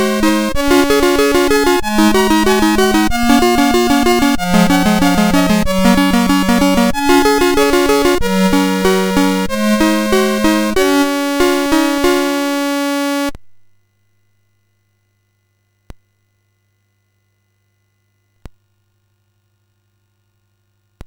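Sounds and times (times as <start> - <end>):
classical piece on MOS6581R4 chip: 0.0 - 13.3.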